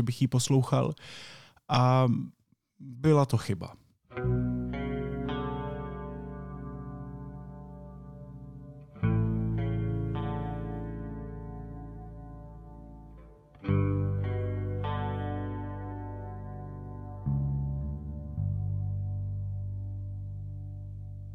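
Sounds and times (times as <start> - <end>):
speech: 0.0 - 4.5
slow dark repetitive indie rock song: 4.2 - 21.2.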